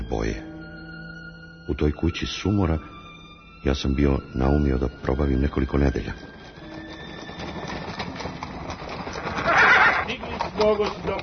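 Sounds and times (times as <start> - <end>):
speech: 0.1 - 0.5, 1.7 - 3.0, 3.6 - 6.4, 10.6 - 11.2
restless frightened horses stamping hooves: 5.1 - 11.2
horse neighing: 7.5 - 10.6.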